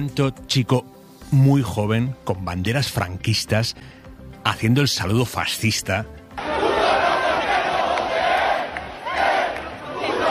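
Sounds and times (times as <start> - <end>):
speech: 0.0 - 6.2
young crowd shouting insults: 6.4 - 10.2.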